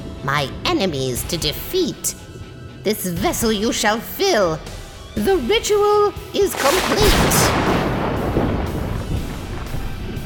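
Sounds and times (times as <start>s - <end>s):
speech: 0.2s - 7.7s
thunder roaring and rolling: 6.4s - 10.2s.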